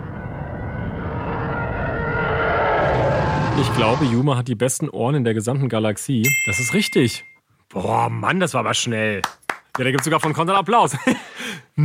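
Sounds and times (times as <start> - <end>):
TIE fighter starship screech: 0.0 - 4.2
speech: 3.6 - 11.8.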